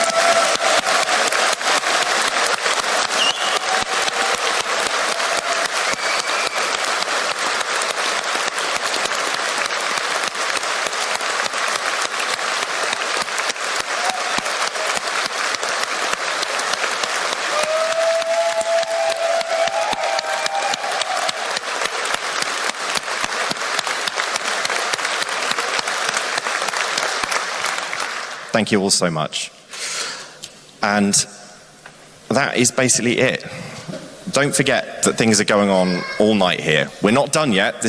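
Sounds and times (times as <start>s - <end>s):
faint whistles and cheers: 0.0s - 26.0s
audience applause: 0.0s - 28.8s, 34.0s - 37.8s
speech: 28.6s - 29.6s, 30.8s - 31.4s, 32.4s - 33.6s, 34.4s - 37.8s.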